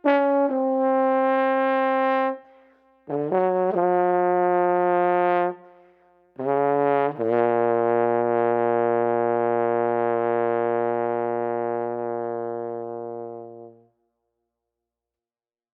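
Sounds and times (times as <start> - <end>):
street trombone playing soulful blues: 0.0 - 2.4, 3.1 - 5.6, 6.4 - 13.8.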